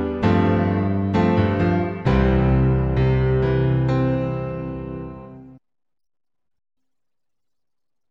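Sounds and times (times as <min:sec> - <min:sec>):
improvised chords solo: 0:00.0 - 0:05.6.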